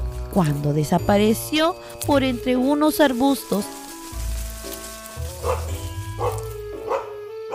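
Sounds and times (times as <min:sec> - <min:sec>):
steady sustained tonal background: 0:00.0 - 0:07.5
speech: 0:00.4 - 0:03.8
small dog barking happily in short bright yaps: 0:05.4 - 0:07.5.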